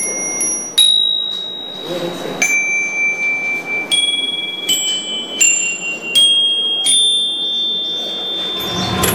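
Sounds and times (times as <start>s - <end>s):
murmur: 0.0s - 9.1s
small metal bells ringing: 0.0s - 9.1s.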